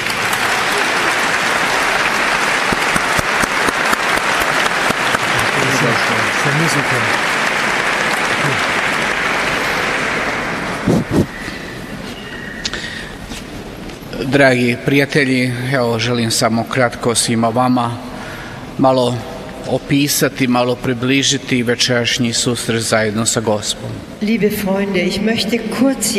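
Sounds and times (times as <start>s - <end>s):
audience applause: 0.0s - 11.9s
speech: 6.8s - 7.3s, 14.3s - 18.1s, 18.8s - 26.1s.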